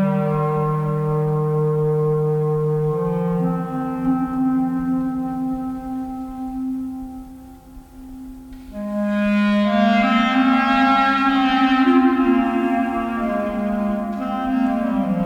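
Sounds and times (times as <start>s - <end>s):
melody: 0.1s - 15.2s.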